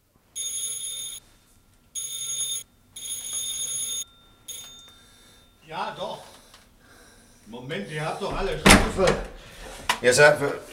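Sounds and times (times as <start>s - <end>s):
doorbell ringing three long and one short: 0.4s - 1.2s, 2.0s - 6.3s
speech: 5.7s - 6.3s, 7.5s - 10.7s.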